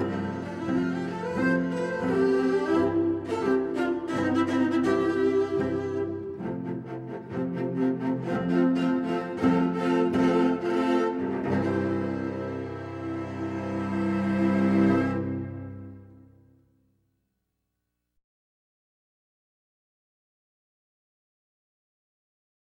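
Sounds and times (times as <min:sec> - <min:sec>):
cello trio: 0:00.0 - 0:16.4.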